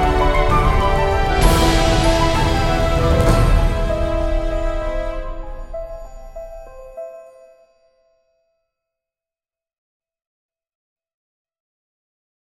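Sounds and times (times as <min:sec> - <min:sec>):
cutscene background music: 0:00.0 - 0:08.4.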